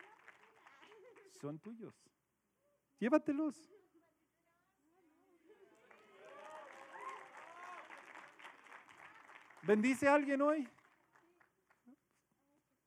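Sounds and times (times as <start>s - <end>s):
audience applause: 0.0s - 1.3s, 5.7s - 11.5s
speech: 1.3s - 2.2s, 3.0s - 3.8s, 9.6s - 10.8s.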